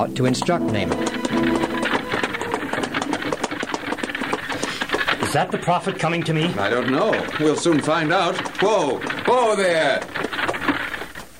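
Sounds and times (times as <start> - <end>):
speech: 0.0 - 1.7, 5.3 - 10.3
chariot wheels rattling and rumbling: 0.0 - 11.3
horses' hooves clattering: 0.0 - 11.3.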